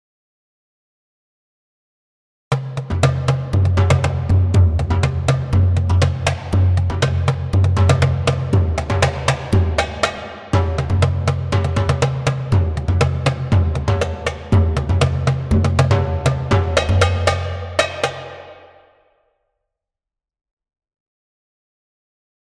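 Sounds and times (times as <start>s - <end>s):
percussion: 2.5s - 19.1s.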